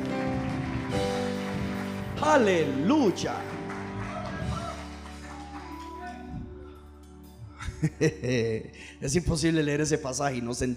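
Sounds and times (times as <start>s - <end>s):
audience applauding: 0.0s - 6.3s
speech: 2.2s - 3.5s, 7.8s - 10.7s
laughter: 7.6s - 8.7s.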